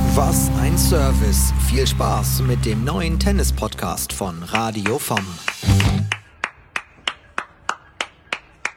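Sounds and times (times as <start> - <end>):
speech: 0.2 - 5.9
single person clapping hands: 4.5 - 8.7.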